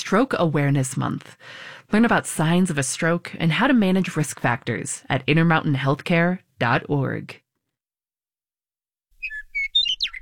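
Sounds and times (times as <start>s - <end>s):
speech: 0.1s - 7.4s
Western Meadowlark song: 9.2s - 10.2s.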